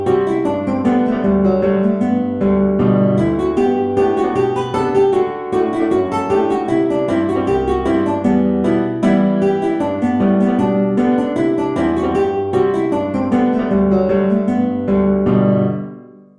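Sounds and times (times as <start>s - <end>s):
guitar: 0.0s - 16.3s
piano: 0.0s - 16.3s.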